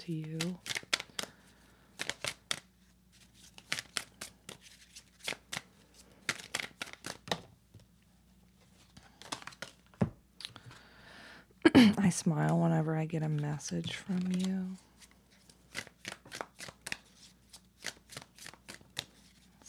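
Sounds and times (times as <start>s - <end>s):
speech: 0.0s - 0.7s, 11.8s - 14.9s
cards for a love reading being shuffled and pulled: 0.1s - 7.5s, 8.6s - 10.6s, 13.3s - 19.6s.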